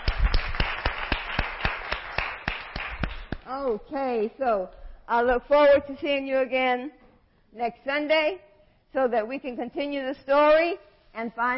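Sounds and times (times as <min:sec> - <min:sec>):
audience hand clapping: 0:00.0 - 0:03.5
speech: 0:03.5 - 0:11.5.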